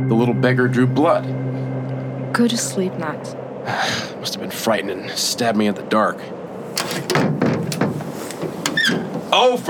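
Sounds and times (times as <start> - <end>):
speech: 0.1 - 1.4, 2.3 - 6.3, 6.9 - 7.8, 8.9 - 9.6
window rattling in its frame from a bird: 6.6 - 9.6.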